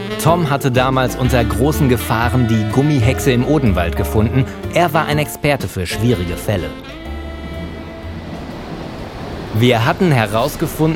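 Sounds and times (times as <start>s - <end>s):
speech: 0.1s - 7.0s, 9.5s - 10.9s
subway train rumbling: 5.0s - 10.9s.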